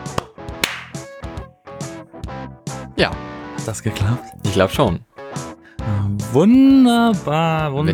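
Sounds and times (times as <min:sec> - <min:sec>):
single hand clap for recording sync: 0:00.0 - 0:01.3
speech: 0:03.0 - 0:07.9.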